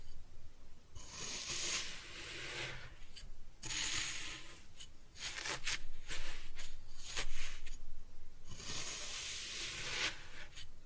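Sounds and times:
cutting kinetic sand: 0:01.0 - 0:03.0, 0:03.6 - 0:07.8, 0:08.5 - 0:10.7.

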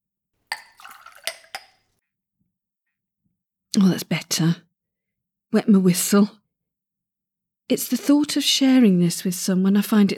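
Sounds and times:
glass clinking: 0:00.5 - 0:01.9
water from a cooler gurgling into a glass: 0:00.5 - 0:01.9
speech: 0:03.8 - 0:04.7, 0:05.5 - 0:06.4, 0:07.7 - 0:10.1.

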